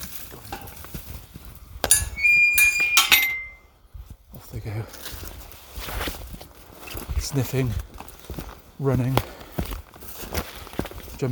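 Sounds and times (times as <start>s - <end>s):
metal gate latch clinking: 1.8s - 3.6s
speech: 4.6s - 5.2s, 7.2s - 7.9s, 8.8s - 9.3s.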